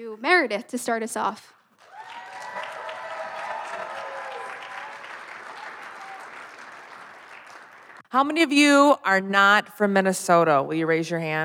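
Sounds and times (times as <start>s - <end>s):
speech: 0.0s - 1.6s, 8.1s - 11.4s
audience applause welcoming panel members at a panel event in Minnesota: 1.8s - 8.0s.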